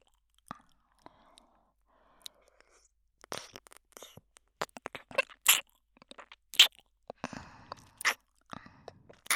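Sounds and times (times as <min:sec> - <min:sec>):
ear licking sounds: 0:03.2 - 0:09.3.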